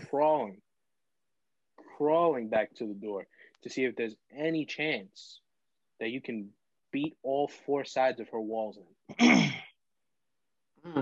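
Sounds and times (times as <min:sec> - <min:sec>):
speech: 0:00.1 - 0:00.6, 0:02.0 - 0:05.4, 0:06.0 - 0:09.7
cough: 0:09.1 - 0:09.8.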